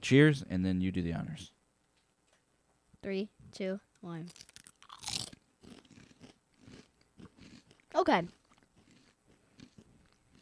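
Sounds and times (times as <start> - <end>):
speech: 0.0 - 1.6, 3.0 - 4.5, 7.9 - 8.4
potato chip crunching: 4.3 - 10.3.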